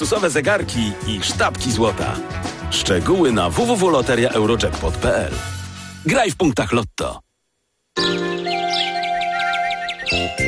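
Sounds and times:
musical backing: 0.0s - 6.3s, 8.0s - 10.4s
speech: 0.0s - 7.2s
sparrows chirping: 8.0s - 10.4s.

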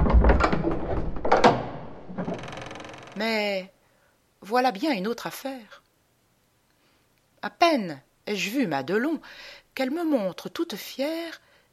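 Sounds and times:
heavy front door of a home swinging shut: 0.0s - 3.2s
speech: 3.2s - 3.8s, 4.4s - 5.8s, 7.4s - 11.4s.

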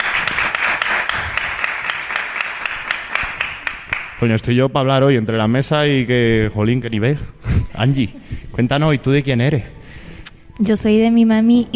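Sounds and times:
audience applause: 0.0s - 4.2s
speech: 4.2s - 9.8s, 10.6s - 11.7s.

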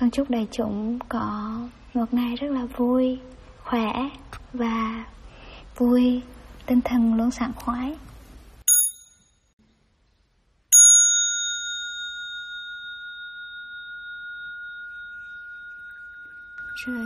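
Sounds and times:
speech: 0.0s - 5.2s, 5.8s - 8.1s, 16.8s - 17.0s
meditation bell struck during a Buddhist relaxation practice: 8.7s - 9.6s, 10.7s - 17.0s.

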